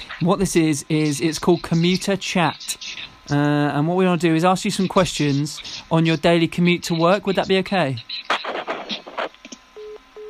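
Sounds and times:
crackly garbled phone line noise: 0:00.0 - 0:10.2
speech: 0:00.2 - 0:08.3
steady mid-pitched phone tone beeping after caller hangs up: 0:09.8 - 0:10.2.

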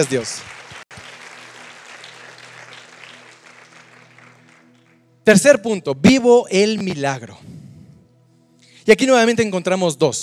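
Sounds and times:
speech: 0:00.0 - 0:00.6, 0:05.3 - 0:07.6, 0:08.8 - 0:10.2
audience clapping loudly: 0:00.0 - 0:05.0.

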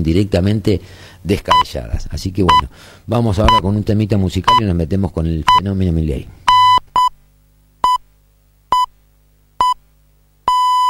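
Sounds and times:
speech: 0:00.0 - 0:06.4
hourly time signal electronic pips: 0:03.4 - 0:03.7, 0:06.5 - 0:07.2, 0:07.8 - 0:08.0, 0:08.7 - 0:09.0, 0:09.6 - 0:09.8, 0:10.4 - 0:10.8.

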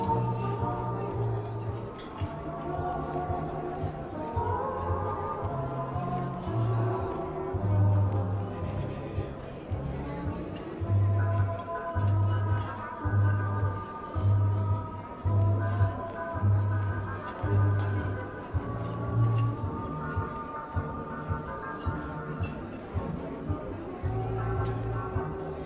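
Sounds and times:
murmured voices: 0:00.0 - 0:25.6
oldie music playing in a coffee shop: 0:00.0 - 0:25.6.

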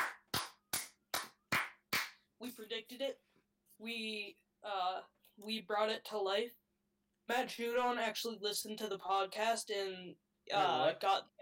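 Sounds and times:
sharp loud hand claps: 0:00.0 - 0:02.3
speech: 0:02.4 - 0:06.6, 0:07.3 - 0:11.4.

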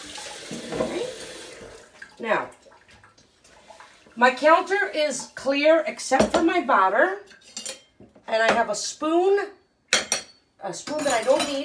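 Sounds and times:
hands being washed under a running tap in a kitchen: 0:00.0 - 0:04.2
speech: 0:02.2 - 0:02.6, 0:04.2 - 0:07.5, 0:08.3 - 0:09.6, 0:10.6 - 0:11.6.

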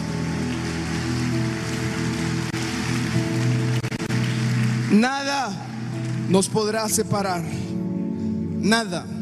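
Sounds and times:
audience applause: 0:00.0 - 0:06.8
speech: 0:04.9 - 0:05.7, 0:06.3 - 0:07.7, 0:08.6 - 0:09.1.

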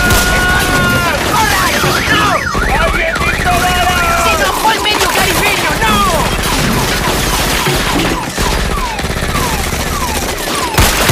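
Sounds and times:
people shouting: 0:00.0 - 0:06.5
gunfire bursts: 0:00.0 - 0:11.1
warbling high-pitched tones: 0:01.5 - 0:10.6.

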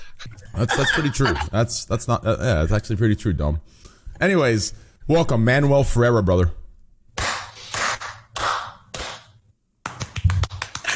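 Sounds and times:
laughter: 0:00.5 - 0:01.6
speech: 0:00.6 - 0:06.6
small group clapping: 0:07.2 - 0:10.9.

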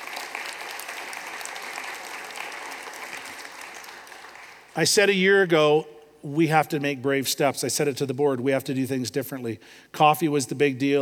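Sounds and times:
audience applause: 0:00.0 - 0:04.8
speech: 0:04.8 - 0:11.0.

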